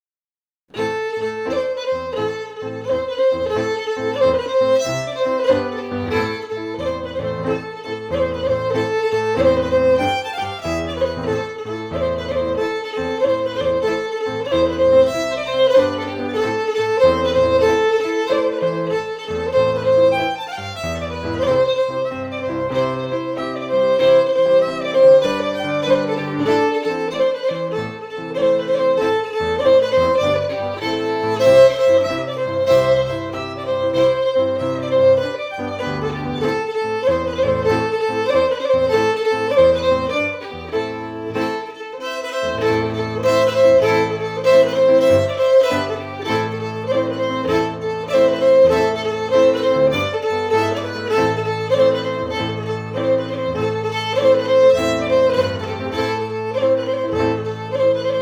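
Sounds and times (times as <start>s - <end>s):
fiddle: 0.7s - 58.2s
piano: 0.7s - 58.2s.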